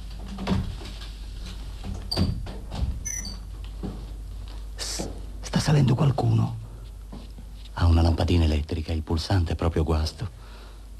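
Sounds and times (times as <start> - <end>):
apartment door on a stairwell landing thumping and creaking: 1.8 - 3.4
speech: 5.7 - 6.6, 8.2 - 10.4.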